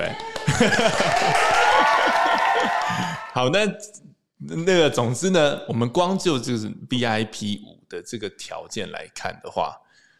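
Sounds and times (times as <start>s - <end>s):
crowd applause: 0.0s - 3.4s
speech: 0.0s - 9.8s
people chuckling: 0.2s - 3.3s.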